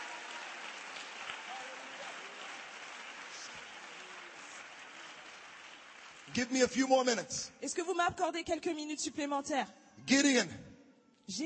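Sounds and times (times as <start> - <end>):
audience clapping hands: 0.0 - 7.5
speech: 6.3 - 10.6, 11.3 - 11.4.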